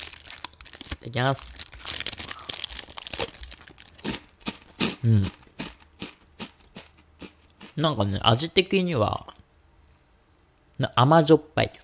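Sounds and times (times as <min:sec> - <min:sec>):
individually wrapped snack's plastic packaging crinkling as it is opened: 0:00.0 - 0:04.3
speech: 0:01.0 - 0:01.6, 0:05.0 - 0:05.4, 0:07.8 - 0:09.3, 0:10.8 - 0:11.8.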